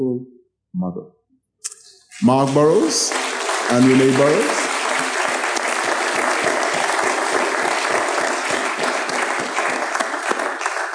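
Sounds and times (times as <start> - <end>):
speech: 0.0 - 1.2, 2.2 - 4.6
round of applause: 2.2 - 10.9.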